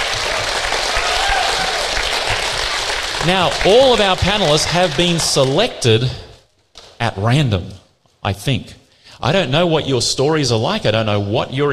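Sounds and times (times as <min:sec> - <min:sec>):
round of applause: 0:00.0 - 0:05.8
speech: 0:03.2 - 0:06.2, 0:07.0 - 0:11.7.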